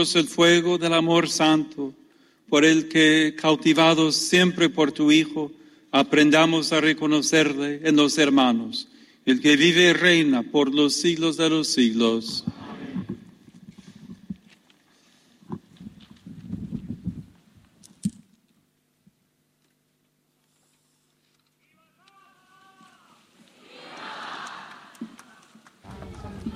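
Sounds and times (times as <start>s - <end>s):
speech: 0.0s - 12.6s
crowd of almost 40,000 people applauding: 23.6s - 26.5s.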